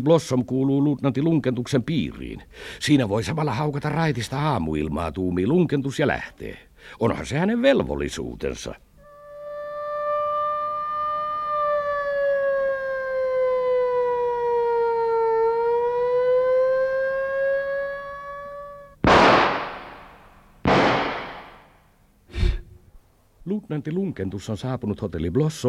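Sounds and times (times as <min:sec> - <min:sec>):
speech: 0:00.0 - 0:08.9, 0:23.7 - 0:25.6
hotel alarm siren wailing: 0:09.0 - 0:19.0
sharp booming blasts: 0:19.0 - 0:21.8.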